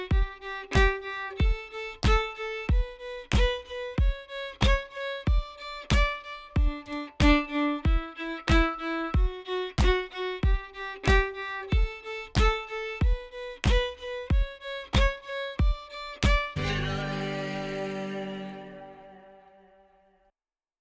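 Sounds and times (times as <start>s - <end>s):
fiddle playing offbeat accents in D major: 0.0s - 19.8s.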